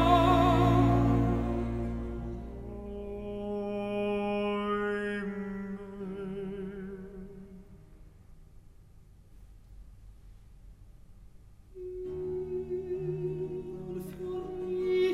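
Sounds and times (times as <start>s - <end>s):
dialogue sung in recitative: 0.0s - 7.6s, 11.8s - 15.1s.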